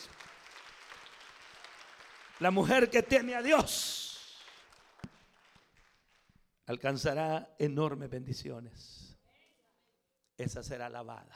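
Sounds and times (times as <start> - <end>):
crowd applauding: 0.0 - 6.4
speech: 2.4 - 4.0, 6.7 - 9.1, 10.4 - 11.3.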